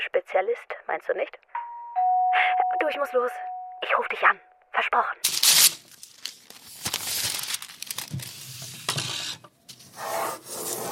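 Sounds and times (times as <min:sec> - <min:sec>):
speech: 0:00.1 - 0:01.6, 0:02.3 - 0:05.8
pencil scratching on paper drawing a high-rise building: 0:09.2 - 0:10.9.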